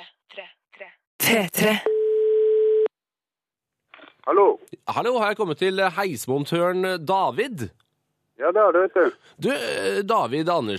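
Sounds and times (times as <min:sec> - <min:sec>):
speech: 0:01.3 - 0:01.9, 0:04.3 - 0:07.8, 0:08.4 - 0:10.7
telephone line tone while calling a lift technician: 0:01.9 - 0:02.9.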